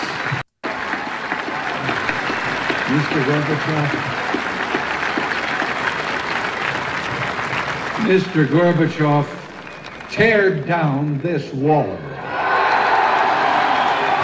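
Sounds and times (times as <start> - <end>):
crowd cheering and applauding: 0.0 - 11.3, 12.0 - 14.2
speech: 2.9 - 4.5, 8.0 - 9.4, 10.1 - 12.1.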